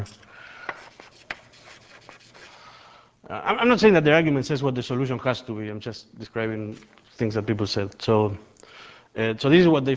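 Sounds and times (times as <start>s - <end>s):
speech: 0.0s - 0.3s, 3.3s - 8.6s, 9.2s - 9.9s
drawing on a board during a physics lecture: 0.7s - 2.6s.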